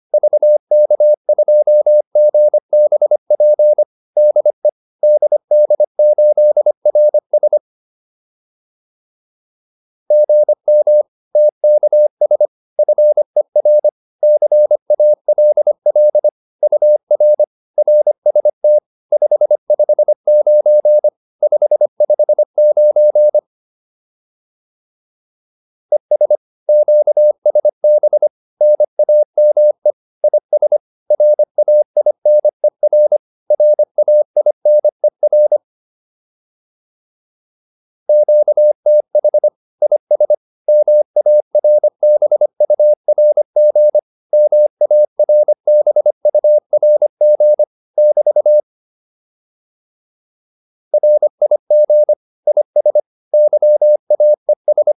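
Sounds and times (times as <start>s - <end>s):
morse code QSO practice: 0.2s - 7.6s, 10.1s - 23.4s, 25.9s - 35.6s, 38.1s - 48.6s, 51.0s - 54.9s.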